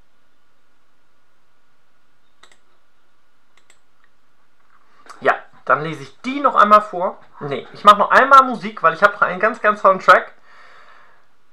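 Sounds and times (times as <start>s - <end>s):
computer mouse clicking: 2.4s - 2.8s, 3.5s - 4.2s
speech: 5.7s - 10.4s.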